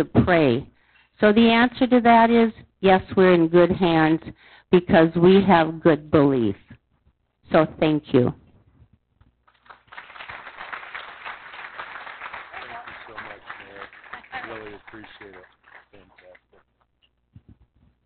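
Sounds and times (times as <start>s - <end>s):
speech: 0.0s - 6.7s, 7.5s - 8.4s
audience applause: 9.5s - 16.6s.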